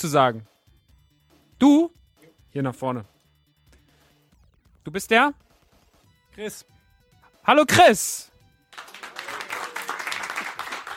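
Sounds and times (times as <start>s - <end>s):
speech: 0.0s - 0.5s, 1.6s - 3.1s, 4.8s - 5.4s, 6.4s - 6.7s, 7.4s - 8.3s
audience applause: 8.7s - 10.9s.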